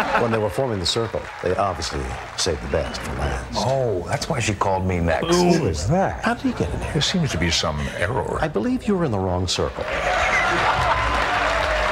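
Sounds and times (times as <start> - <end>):
laughter: 0.0 - 0.9, 10.1 - 11.3
large room of people applauding: 0.0 - 3.5, 9.6 - 11.9
speech: 0.0 - 10.7.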